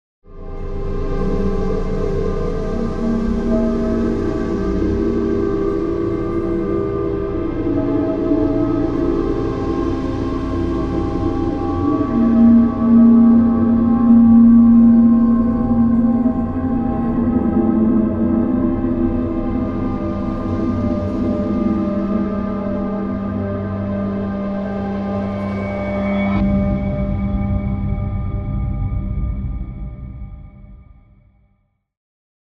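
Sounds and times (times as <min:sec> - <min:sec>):
hard gravity drone: 0:00.3 - 0:31.2.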